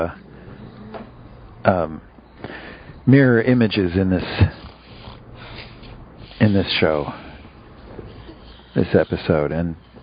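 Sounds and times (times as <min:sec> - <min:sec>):
speech: 0:00.0 - 0:00.2, 0:01.6 - 0:02.1, 0:03.1 - 0:04.6, 0:06.4 - 0:07.2, 0:08.8 - 0:09.8
person snoring: 0:04.2 - 0:09.2.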